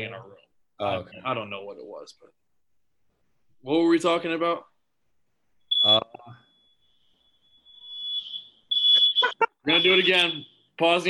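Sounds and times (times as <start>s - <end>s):
speech: 0.0s - 2.5s, 3.6s - 4.7s, 9.6s - 11.0s
fire alarm going off: 5.7s - 10.8s.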